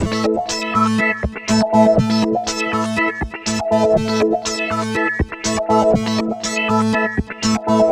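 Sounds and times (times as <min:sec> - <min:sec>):
NRG trance synth arpeggio: 0:00.0 - 0:07.8.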